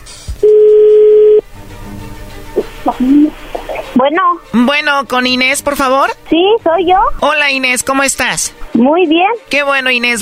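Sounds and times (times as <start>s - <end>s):
low phone line noise: 0.4s - 1.4s
telephone call ringing tone: 0.4s - 1.4s
speech: 2.9s - 3.4s, 4.0s - 10.2s.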